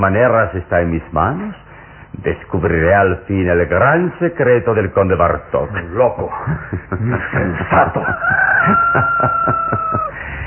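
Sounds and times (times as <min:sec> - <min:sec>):
speech: 0:00.0 - 0:10.1
laughter: 0:06.3 - 0:10.3
rooster crowing before dawn: 0:08.0 - 0:10.2.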